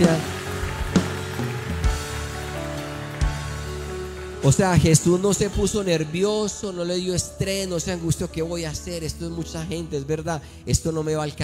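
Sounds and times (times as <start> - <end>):
audience applauding loudly: 0.0 - 7.0
speech: 4.4 - 11.4.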